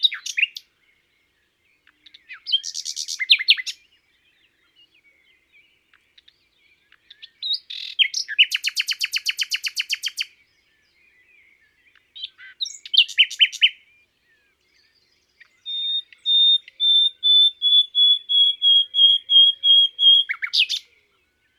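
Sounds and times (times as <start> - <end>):
common nightingale singing: 0.0 - 21.5.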